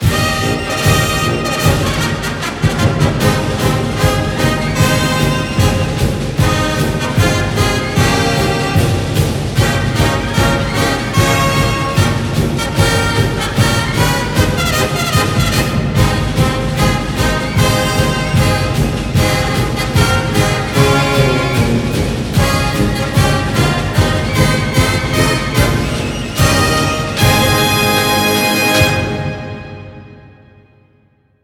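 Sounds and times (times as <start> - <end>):
song: 0.0 - 30.8.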